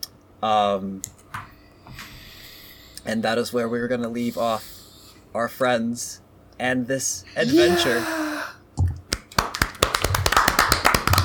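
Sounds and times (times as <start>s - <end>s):
speech: 0.4s - 1.2s, 3.1s - 4.7s, 5.3s - 8.2s
hand claps: 9.1s - 11.2s.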